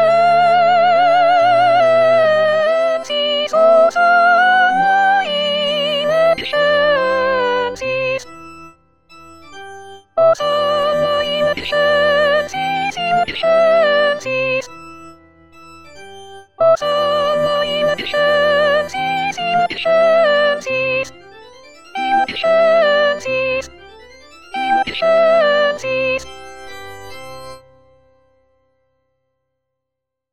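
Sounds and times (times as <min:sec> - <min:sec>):
soprano singing a Sanctus: 0:00.0 - 0:08.3, 0:10.2 - 0:14.7, 0:16.6 - 0:21.3, 0:22.0 - 0:23.8, 0:24.5 - 0:26.3.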